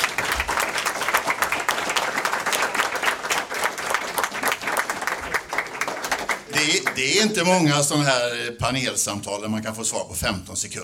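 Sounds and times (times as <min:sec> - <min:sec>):
audience applause: 0:00.0 - 0:07.7
speech: 0:07.0 - 0:10.8.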